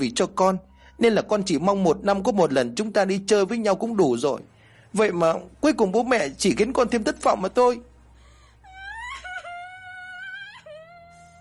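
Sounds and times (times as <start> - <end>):
speech: 0.0 - 7.9
girl bursting into tears with wailing sobs: 8.6 - 11.3.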